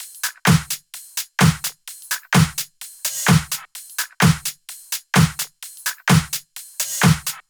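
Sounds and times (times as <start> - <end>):
drum loops: 0.0 - 4.5, 5.2 - 7.4.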